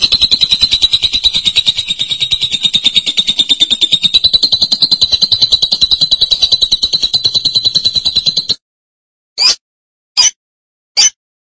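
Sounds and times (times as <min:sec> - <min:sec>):
lovebird chattering trill: 0:00.0 - 0:08.6.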